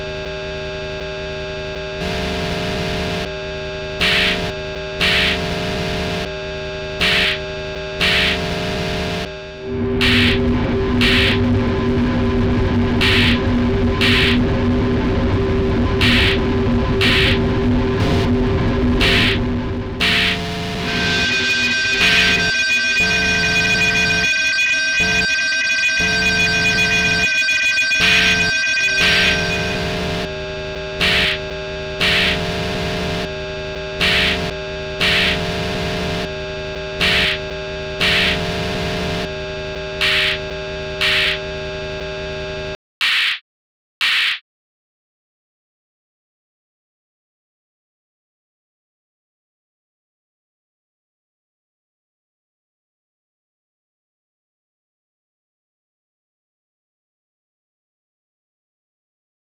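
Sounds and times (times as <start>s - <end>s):
sine wave tone: 0.0s - 42.8s.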